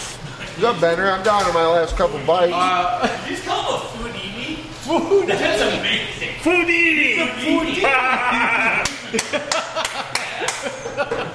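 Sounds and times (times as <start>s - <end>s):
voices murmuring: 0.3s - 9.1s
speech: 0.6s - 4.1s, 4.9s - 11.3s
laughter: 2.1s - 4.0s, 4.8s - 6.4s, 7.2s - 11.3s
hand claps: 8.8s - 10.8s.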